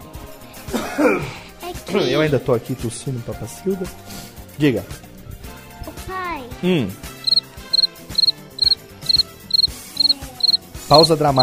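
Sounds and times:
speech: 0.8s - 5.1s, 6.6s - 7.1s, 10.9s - 11.4s
cricket chirping: 7.2s - 11.4s.

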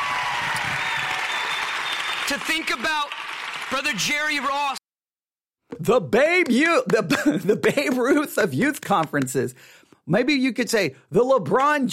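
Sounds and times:
audience applause: 0.0s - 4.8s
speech: 2.3s - 4.8s, 5.7s - 11.9s.

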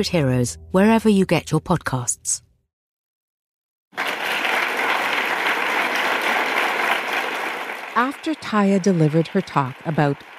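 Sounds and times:
speech: 0.0s - 2.5s, 8.0s - 10.3s
audience applause in a standing ovation after a talk: 4.0s - 10.3s.

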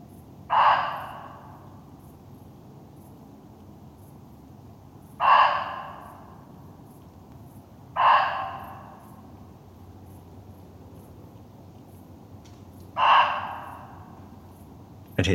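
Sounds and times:
muntjac deer barking: 0.5s - 1.6s, 5.2s - 6.4s, 8.0s - 9.2s, 13.0s - 14.3s.

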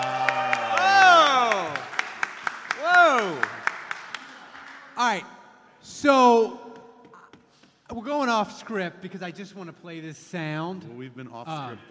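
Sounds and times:
sharp claps: 0.0s - 4.8s
speech: 8.4s - 11.8s.

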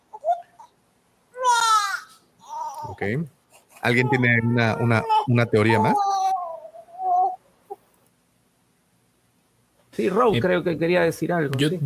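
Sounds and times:
baby crying: 0.1s - 0.7s, 1.3s - 3.0s, 3.6s - 7.4s
speech: 3.0s - 6.2s, 10.0s - 11.8s.

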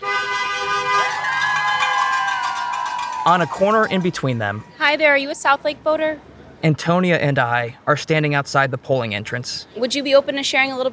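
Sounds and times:
passing drivers honking car horns: 0.0s - 5.0s
speech: 3.2s - 10.9s.

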